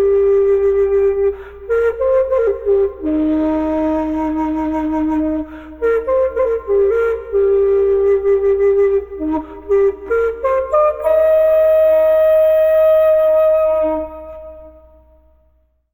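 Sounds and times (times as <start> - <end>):
old man playing flute: 0.0 - 15.4.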